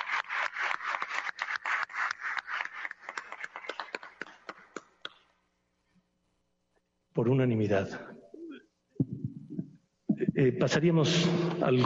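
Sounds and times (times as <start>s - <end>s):
group applause: 0.0s - 5.4s
speech: 7.2s - 8.2s, 10.4s - 11.8s.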